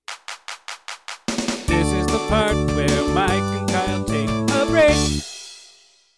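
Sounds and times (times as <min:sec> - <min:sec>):
song: 0:01.5 - 0:05.4.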